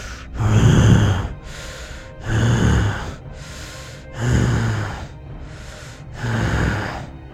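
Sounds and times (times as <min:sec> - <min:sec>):
distant creature snorting: 0:00.0 - 0:07.1
softer intakes of breath: 0:00.0 - 0:07.1.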